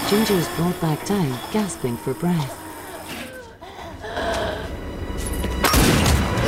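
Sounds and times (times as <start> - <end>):
speech: 0.1 - 2.6
gunshot: 5.7 - 6.3.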